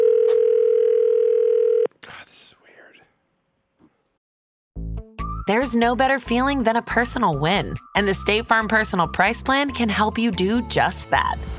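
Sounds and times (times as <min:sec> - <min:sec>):
telephone dial tone: 0:00.0 - 0:01.9
speech: 0:05.5 - 0:11.5.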